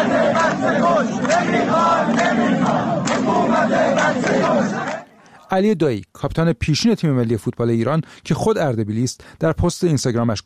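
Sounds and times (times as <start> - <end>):
protesters chanting slogans: 0.0 - 5.3
speech: 5.5 - 10.4.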